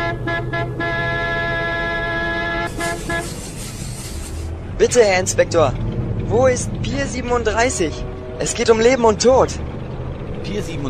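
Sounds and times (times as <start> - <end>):
car horn honking: 0.0 - 3.6
speech: 4.8 - 9.6, 10.4 - 10.8.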